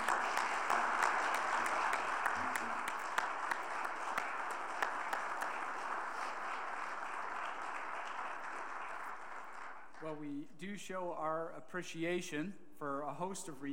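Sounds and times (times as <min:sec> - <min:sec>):
audience clapping: 0:00.0 - 0:10.2
speech: 0:10.6 - 0:13.7.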